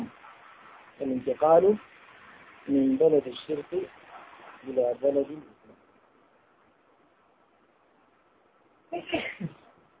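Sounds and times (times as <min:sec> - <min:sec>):
speech: 0:01.0 - 0:01.9, 0:02.6 - 0:04.0, 0:04.6 - 0:05.6, 0:08.9 - 0:09.6
sneeze: 0:09.0 - 0:09.6.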